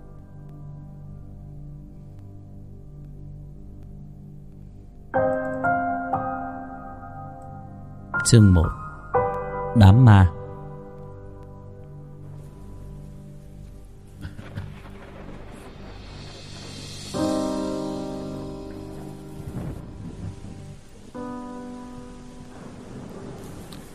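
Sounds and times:
sustained low musical tones: 0:00.0 - 0:23.9
speech: 0:08.3 - 0:08.8, 0:09.8 - 0:10.4
heavy rain at night: 0:12.3 - 0:23.9.

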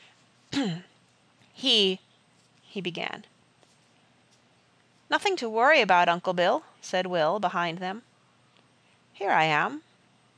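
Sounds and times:
voice imitating throat clearing for a ship captain character: 0:00.5 - 0:01.0
speech: 0:00.6 - 0:00.9, 0:01.6 - 0:02.0, 0:02.8 - 0:03.3, 0:05.1 - 0:08.1, 0:09.2 - 0:09.9.

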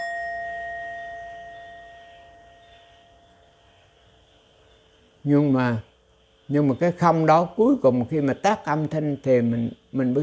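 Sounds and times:
struck temple bell ringing: 0:00.0 - 0:03.3
speech: 0:05.2 - 0:05.9, 0:06.5 - 0:10.2.

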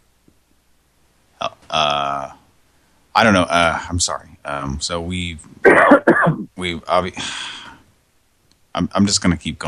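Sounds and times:
speech: 0:03.2 - 0:07.6, 0:08.8 - 0:09.6
person clearing throat on the phone line: 0:05.7 - 0:06.5.

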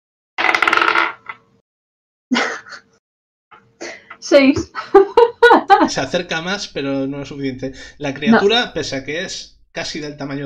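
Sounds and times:
dice being rolled: 0:00.4 - 0:01.4
speech: 0:04.2 - 0:10.4.

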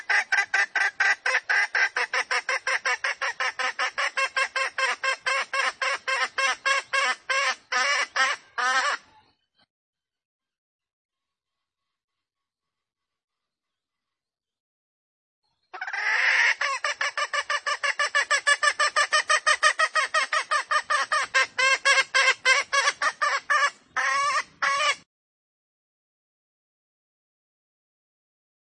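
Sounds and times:
junglefowl hen cackling: 0:00.0 - 0:09.2, 0:15.8 - 0:25.1.

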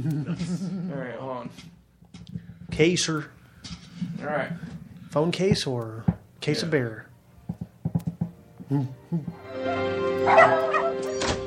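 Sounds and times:
speech: 0:00.0 - 0:07.1, 0:08.7 - 0:10.6
dog barking and yipping: 0:10.2 - 0:11.2.

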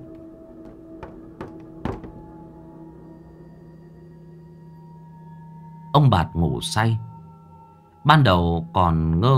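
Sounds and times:
knocks on a house door at night: 0:00.0 - 0:02.6
speech: 0:06.0 - 0:07.1, 0:08.0 - 0:09.3.

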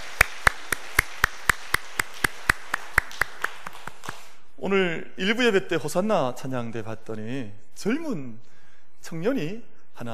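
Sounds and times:
audience applause: 0:00.0 - 0:04.4
speech: 0:04.6 - 0:10.1.

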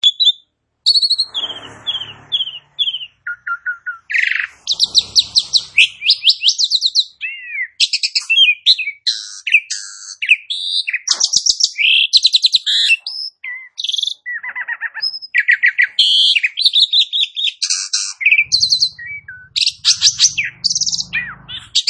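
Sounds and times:
Asian pied starling singing: 0:00.0 - 0:21.8.

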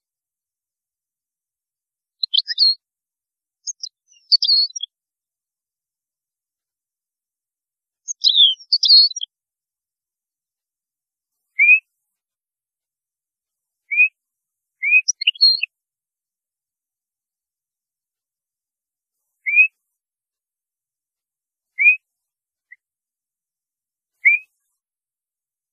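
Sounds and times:
European goldfinch twittering: 0:02.2 - 0:02.8, 0:03.6 - 0:04.9, 0:08.1 - 0:09.3, 0:14.8 - 0:15.7, 0:19.5 - 0:19.7, 0:21.8 - 0:22.0, 0:24.2 - 0:24.5.

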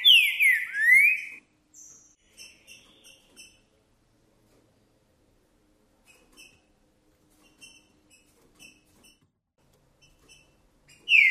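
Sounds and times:
green-winged saltator whistled song: 0:00.0 - 0:02.1.

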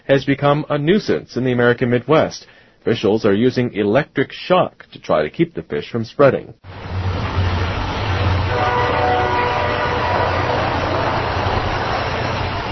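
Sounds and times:
speech: 0:00.1 - 0:07.0
faint tonal whines: 0:06.7 - 0:12.7
train rumbling past on a busy railroad line: 0:06.7 - 0:12.7
wheels roaring on track: 0:06.7 - 0:12.7.

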